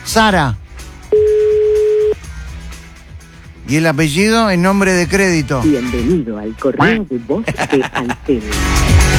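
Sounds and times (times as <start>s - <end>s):
speech: 0.1s - 1.3s, 3.7s - 8.8s
ringback tone of an outgoing phone call: 1.1s - 2.2s
laughter: 7.4s - 8.6s.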